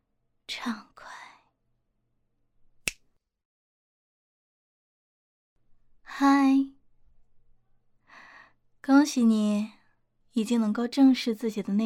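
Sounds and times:
speech: 0:00.6 - 0:00.9, 0:08.8 - 0:09.8, 0:10.4 - 0:11.8
finger snap: 0:02.8 - 0:03.1.

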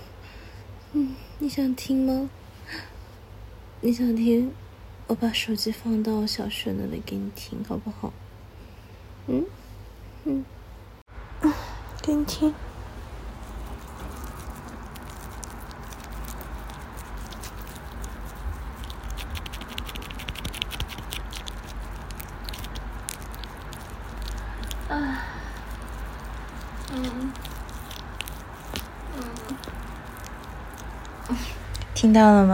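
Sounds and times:
speech: 0:00.9 - 0:02.9, 0:03.8 - 0:08.2, 0:09.3 - 0:09.6, 0:10.2 - 0:10.6, 0:11.4 - 0:12.7, 0:32.1 - 0:32.5
slippery water squishing: 0:13.3 - 0:31.7.

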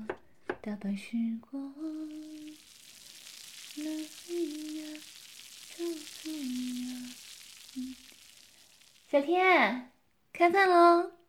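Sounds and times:
speech: 0:00.7 - 0:01.6, 0:09.2 - 0:11.2
food sizzling as it fries in a pan: 0:01.8 - 0:09.6.

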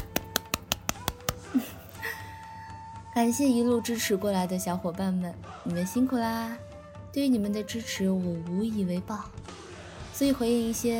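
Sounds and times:
hands clapping: 0:00.0 - 0:01.7
speech: 0:03.2 - 0:09.4, 0:10.2 - 0:10.9.

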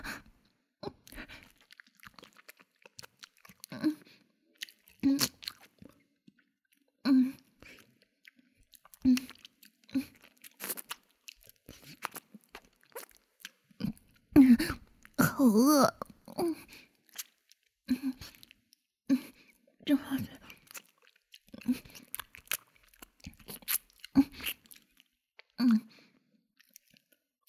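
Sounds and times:
person chewing a boxed lunch: 0:01.0 - 0:06.0, 0:07.3 - 0:14.0, 0:14.8 - 0:17.6, 0:18.2 - 0:18.6, 0:20.3 - 0:25.1.

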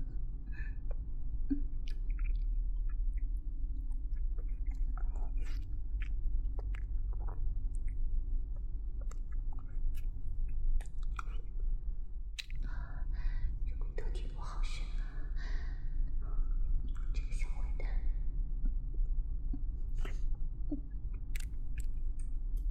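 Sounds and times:
low hum: 0:00.0 - 0:22.6
person chewing fried chicken cutlet: 0:01.7 - 0:11.5, 0:21.1 - 0:22.6.

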